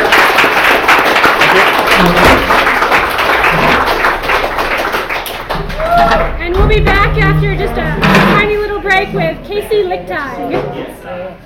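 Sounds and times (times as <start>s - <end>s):
live audience round of applause: 0.0s - 6.4s
speech: 2.0s - 2.4s, 6.7s - 11.4s.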